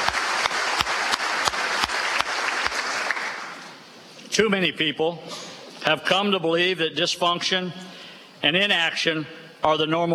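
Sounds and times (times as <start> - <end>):
bipartisan applause in a legislative chamber: 0.0 - 3.8
speech: 4.4 - 10.1.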